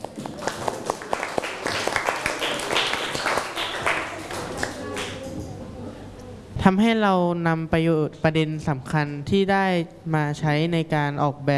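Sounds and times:
classroom applause: 0.0 - 5.4
speech: 6.6 - 11.5.

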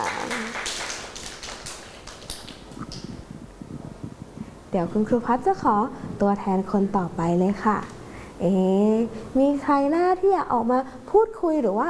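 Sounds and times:
children clapping: 0.0 - 3.2
speech: 4.7 - 11.8.

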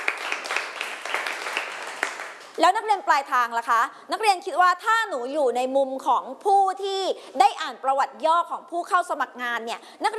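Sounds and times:
students in a classroom clapping for two classmates: 0.0 - 2.6
speech: 2.6 - 10.1.

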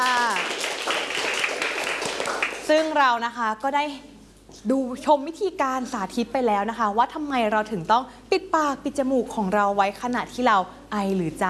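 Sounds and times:
students in a classroom clapping for a classmate: 0.0 - 2.9
speech: 2.7 - 11.4.

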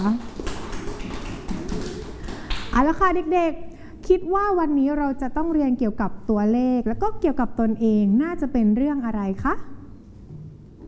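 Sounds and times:
speech: 0.0 - 0.3, 2.8 - 9.8
group of children clapping for themselves: 0.0 - 2.8.

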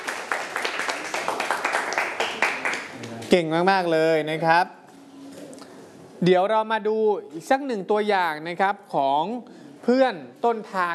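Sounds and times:
classroom clapping: 0.0 - 3.3
speech: 3.3 - 4.8, 6.2 - 10.9.

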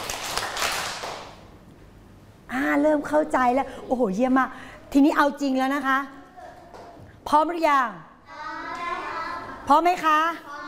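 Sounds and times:
children clapping hands on the teacher's cue: 0.0 - 1.5
speech: 2.8 - 6.2, 7.3 - 8.1, 9.7 - 10.5.

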